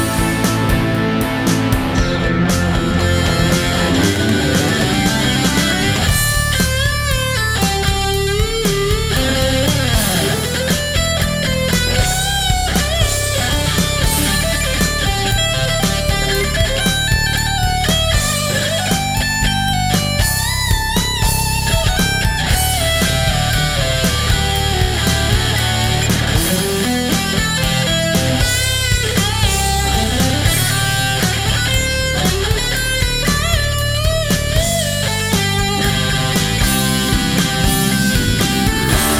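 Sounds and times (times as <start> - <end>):
karaoke full mix: 0.0 - 39.1.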